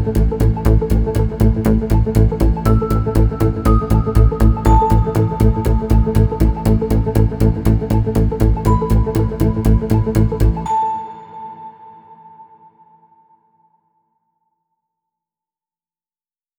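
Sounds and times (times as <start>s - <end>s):
tense music: 0.0s - 12.9s.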